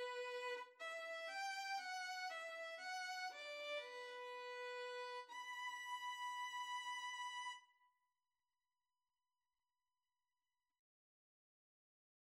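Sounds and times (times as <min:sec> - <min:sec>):
violin and cello duet: 0:00.0 - 0:07.6.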